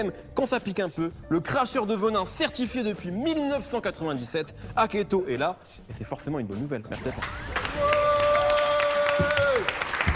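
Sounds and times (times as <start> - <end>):
speech: 0.0 - 8.0
audience applause: 7.4 - 10.1.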